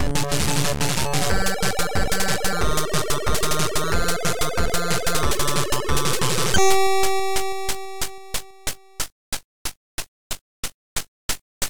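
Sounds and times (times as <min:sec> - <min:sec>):
techno remix: 0:00.0 - 0:08.8.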